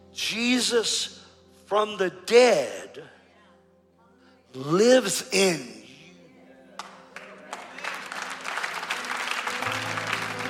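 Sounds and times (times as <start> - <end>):
speech: 0.2 - 3.2, 4.5 - 5.8
golf clap from the audience: 6.8 - 10.4.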